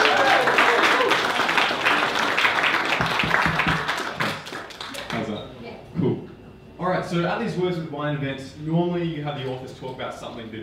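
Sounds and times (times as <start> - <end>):
audience applause: 0.0 - 5.2
speech: 7.1 - 10.6.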